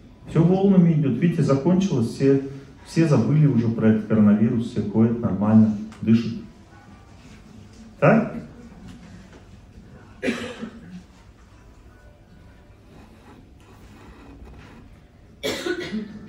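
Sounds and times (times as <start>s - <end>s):
speech: 0.4s - 6.4s, 8.0s - 8.5s
people coughing: 10.1s - 11.2s, 15.4s - 16.2s.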